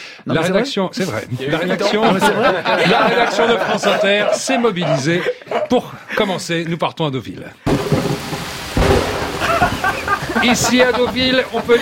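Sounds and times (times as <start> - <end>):
speech: 0.2 - 7.9, 10.4 - 11.8
laughter: 1.1 - 6.6, 9.2 - 11.8
heavy rain in Deauville: 7.7 - 11.8
thunder rumbling in Deauville: 7.7 - 11.8.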